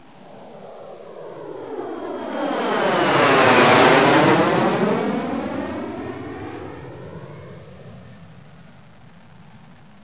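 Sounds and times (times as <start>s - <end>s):
jet aircraft: 0.0s - 10.0s.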